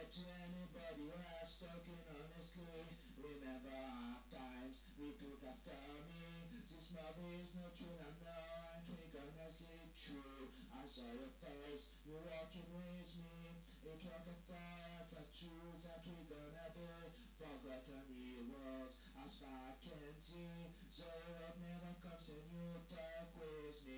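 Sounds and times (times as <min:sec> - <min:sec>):
vocals of verse and chorus: 0:00.0 - 0:23.9.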